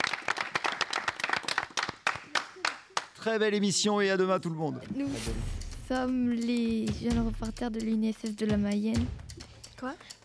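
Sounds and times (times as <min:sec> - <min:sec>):
audience applause: 0:00.0 - 0:03.4
speech: 0:03.2 - 0:09.2, 0:09.8 - 0:10.2.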